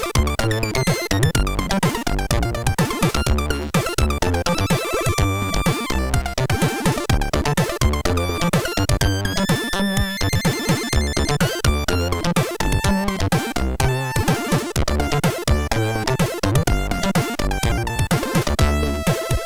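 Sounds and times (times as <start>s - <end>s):
music on MOS6581R3 sound chip: 0.0s - 19.4s.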